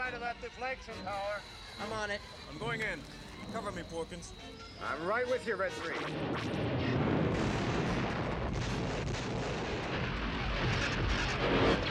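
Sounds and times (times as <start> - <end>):
speech: 0.2 - 7.1
explosions in a Star Wars space battle: 6.2 - 11.8.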